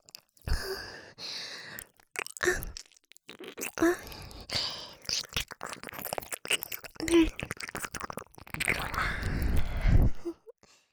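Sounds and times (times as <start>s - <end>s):
ASMR ear licking in the right ear: 1.7s - 10.3s.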